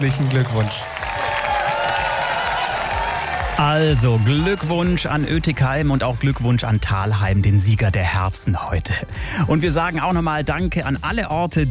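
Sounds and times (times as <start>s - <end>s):
speech: 0.0s - 1.1s, 3.6s - 11.6s
crowd cheering and applauding at a contest between towns: 0.0s - 7.4s.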